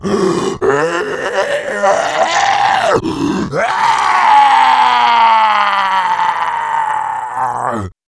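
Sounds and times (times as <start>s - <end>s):
person moaning: 0.0s - 8.0s.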